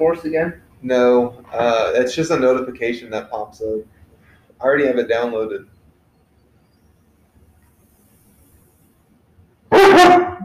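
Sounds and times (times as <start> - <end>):
speech: 0.0 - 4.0, 4.6 - 5.7
dog barking: 9.7 - 10.4.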